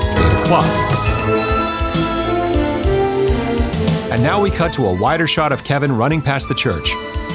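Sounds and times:
bell chiming in film score cue: 0:00.0 - 0:03.8
speech: 0:00.5 - 0:01.5, 0:04.1 - 0:07.2.

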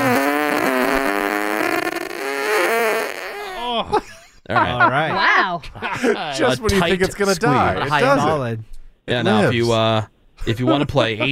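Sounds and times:
squeaky fart-like sound effect: 0:00.0 - 0:03.7
laughter: 0:03.6 - 0:07.1
speech: 0:03.9 - 0:11.3.

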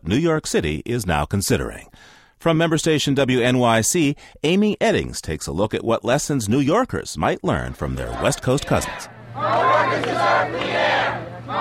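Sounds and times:
speech: 0:00.0 - 0:11.5
passionate crowd at public hearing on smoking ban at New York's City Hall: 0:08.0 - 0:11.5.

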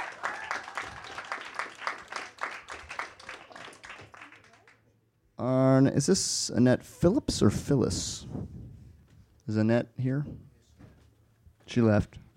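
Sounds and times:
audience applause: 0:00.0 - 0:04.8
speech: 0:05.4 - 0:08.5, 0:09.5 - 0:10.5, 0:11.7 - 0:12.3.

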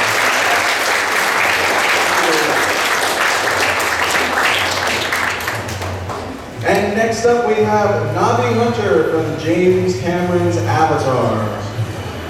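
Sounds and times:
audience applause: 0:00.0 - 0:06.4
speech: 0:07.1 - 0:11.6.

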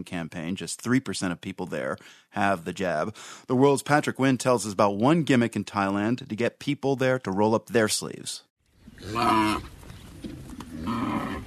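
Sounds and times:
speech: 0:00.0 - 0:11.4
large cow grunting: 0:08.8 - 0:11.4.

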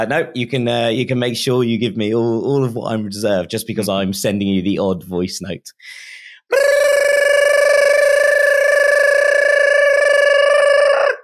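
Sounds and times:
speech: 0:00.0 - 0:06.8
gibberish siren sound effect: 0:06.5 - 0:11.2.

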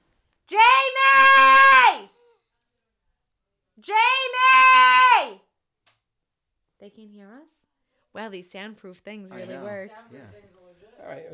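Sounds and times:
child screaming from another room: 0:00.5 - 0:02.1, 0:03.9 - 0:05.4
speech: 0:03.8 - 0:04.1, 0:06.9 - 0:11.3.

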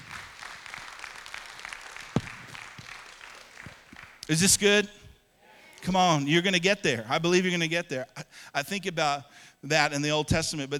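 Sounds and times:
audience round of applause: 0:00.0 - 0:04.2
speech: 0:04.3 - 0:05.0, 0:05.8 - 0:10.7.

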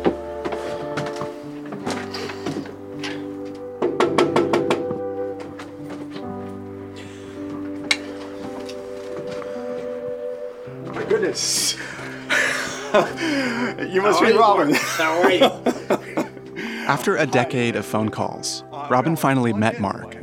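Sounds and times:
sustained musical tones: 0:00.0 - 0:20.2
knocking on a door: 0:03.8 - 0:04.9
laughter: 0:11.0 - 0:17.4
speech: 0:13.0 - 0:15.7, 0:16.9 - 0:20.2.

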